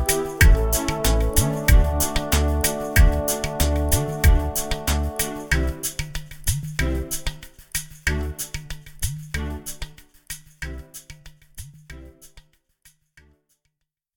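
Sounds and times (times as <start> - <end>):
fun orchestral music: 0.0 - 7.5, 8.1 - 10.0.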